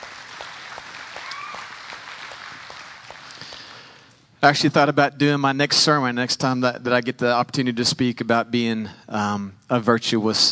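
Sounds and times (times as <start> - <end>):
audience applause: 0.0 - 4.1
speech: 4.4 - 10.5.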